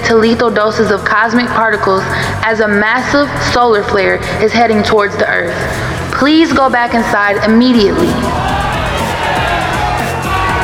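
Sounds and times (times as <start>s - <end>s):
speech: 0.1s - 8.4s
restless crowd shouting and jeering: 7.8s - 10.6s.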